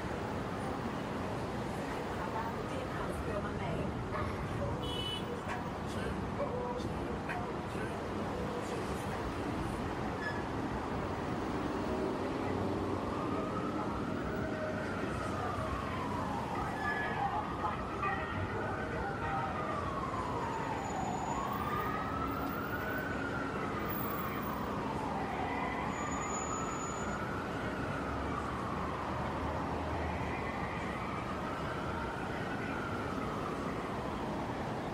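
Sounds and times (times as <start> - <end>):
heavy traffic roar on the Brooklyn Bridge: 0.0 - 34.9
siren: 11.4 - 34.9.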